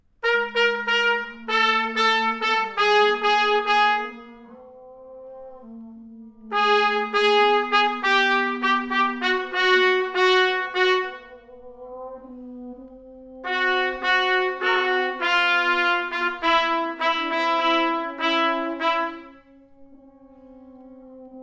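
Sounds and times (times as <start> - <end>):
fanfare: 0.2 - 4.2, 6.5 - 11.3, 13.5 - 19.3.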